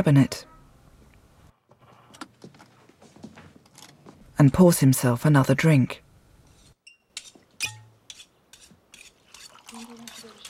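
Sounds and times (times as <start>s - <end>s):
speech: 0.0s - 0.5s, 4.4s - 6.0s
knife being sharpened: 6.5s - 10.4s.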